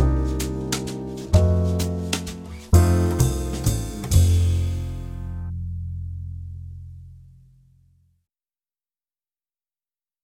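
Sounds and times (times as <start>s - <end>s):
free solo backing track: 0.0s - 5.5s.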